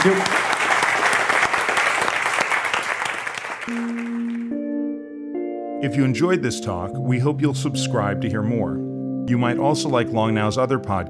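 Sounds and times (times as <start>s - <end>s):
speech: 0.0s - 0.4s, 5.8s - 11.0s
large audience applause: 0.0s - 4.5s
sustained musical tones: 3.7s - 11.0s.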